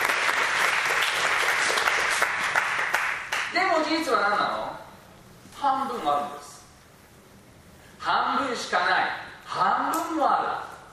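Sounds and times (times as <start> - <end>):
audience applause: 0.0 - 3.5
speech: 3.6 - 4.8, 5.6 - 6.5, 8.0 - 10.7.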